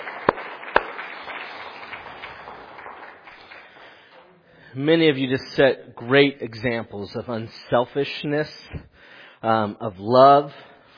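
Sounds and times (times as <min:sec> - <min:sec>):
audience clapping: 0:00.0 - 0:04.2
speech: 0:04.7 - 0:10.7.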